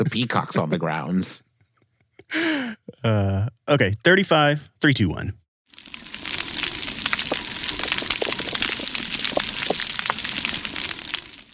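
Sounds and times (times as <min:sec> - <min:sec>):
speech: 0:00.0 - 0:01.5, 0:02.3 - 0:05.9
crackling of an underwater coral reef: 0:05.7 - 0:11.5.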